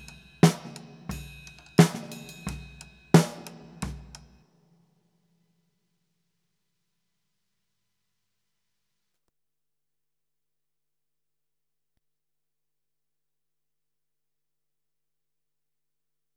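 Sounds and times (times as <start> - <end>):
snare drum through AKG BX20 spring reverb: 0.0 - 4.4.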